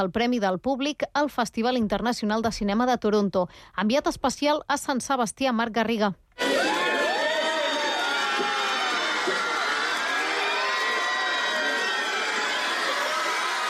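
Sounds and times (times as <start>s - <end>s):
speech: 0.0s - 6.8s
crowd cheering and screaming at Brad Pitt's arrival outside Hotel Maria Cristina in San Sebastián: 6.4s - 13.6s.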